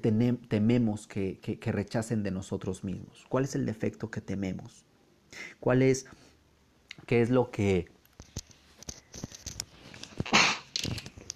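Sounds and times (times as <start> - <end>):
speech: 0.0 - 6.2, 7.0 - 8.0
sneeze: 10.2 - 10.7.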